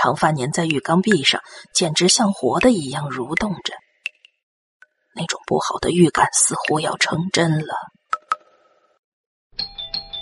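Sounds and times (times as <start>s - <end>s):
speech: 0.0s - 3.8s, 5.2s - 8.0s
doorbell ringing: 9.6s - 10.2s.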